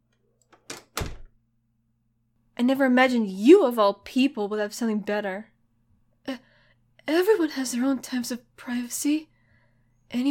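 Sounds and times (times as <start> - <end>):
door swinging: 0.6 - 1.3
speech: 2.6 - 5.5, 7.1 - 9.3.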